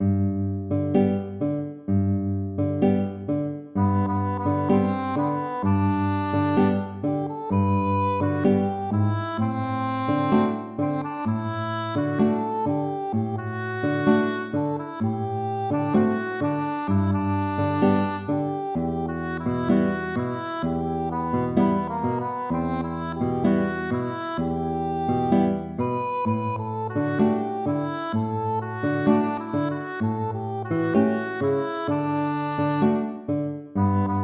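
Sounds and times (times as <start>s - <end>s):
tango music: 0.0s - 34.2s.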